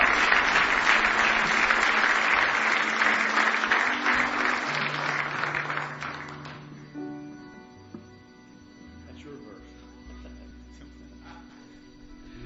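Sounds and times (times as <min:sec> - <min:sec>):
congregation clapping hands in praise during a church service: 0:00.0 - 0:07.0.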